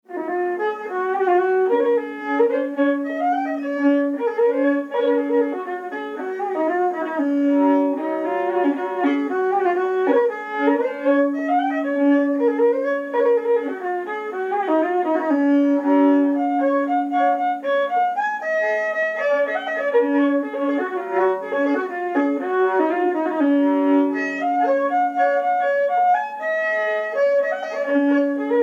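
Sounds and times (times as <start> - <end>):
polka music: 0.1 - 28.6.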